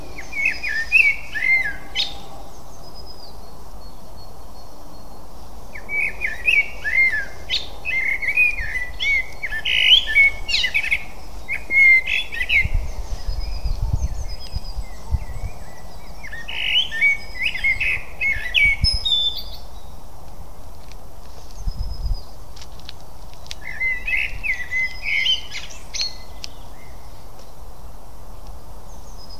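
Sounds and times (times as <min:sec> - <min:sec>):
Eurasian blackbird singing: 0:00.0 - 0:19.9, 0:23.6 - 0:27.2.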